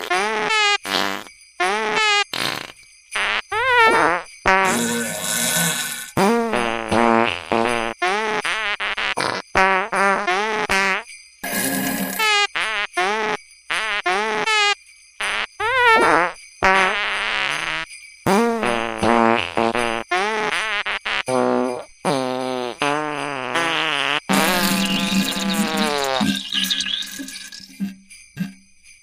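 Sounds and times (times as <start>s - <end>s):
fart sounds jingle: 0.0s - 28.7s.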